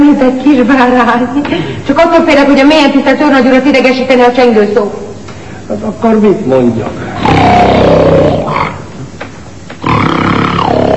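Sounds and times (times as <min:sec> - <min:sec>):
speech: 0:00.0 - 0:05.0, 0:05.7 - 0:08.3
snoring: 0:07.2 - 0:08.5, 0:09.8 - 0:10.9.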